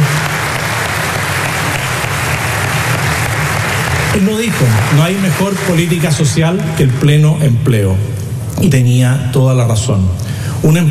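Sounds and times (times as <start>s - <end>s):
audience applause: 0.0s - 6.9s
speech: 4.2s - 10.8s.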